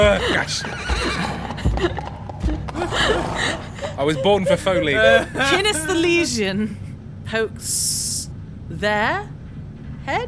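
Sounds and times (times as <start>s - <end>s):
speech: 0.0s - 2.2s, 2.9s - 8.1s, 8.7s - 9.4s, 10.0s - 10.2s
person imitating horse hooves clip-clopping: 0.0s - 2.9s
laughter: 0.0s - 6.8s.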